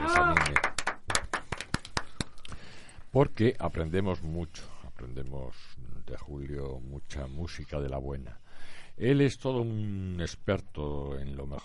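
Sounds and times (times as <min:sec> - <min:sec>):
audience applause: 0:00.0 - 0:02.1
speech: 0:03.1 - 0:11.6.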